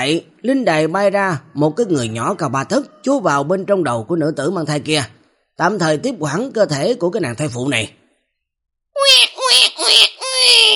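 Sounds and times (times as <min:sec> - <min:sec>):
speech: 0:00.0 - 0:08.0, 0:09.0 - 0:09.2
newborn baby crying: 0:09.0 - 0:10.7.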